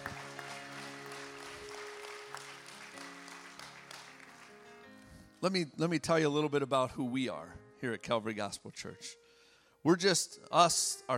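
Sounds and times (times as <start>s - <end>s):
faint applause from the Calvary Gospel Church congregation: 0.0s - 4.7s
speech: 5.4s - 9.2s, 9.8s - 11.1s.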